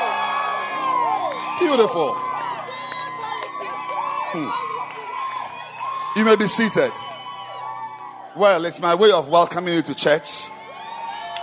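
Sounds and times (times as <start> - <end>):
church congregation in Accra shouting and cheering: 0.0 - 11.4
speech: 1.6 - 2.2, 4.3 - 4.7, 6.2 - 7.1, 8.4 - 10.5.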